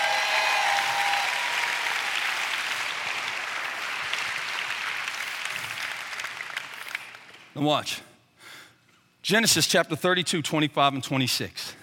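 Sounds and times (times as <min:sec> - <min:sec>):
audience clapping hands: 0:00.0 - 0:07.6
speech: 0:07.6 - 0:08.1, 0:09.3 - 0:11.7.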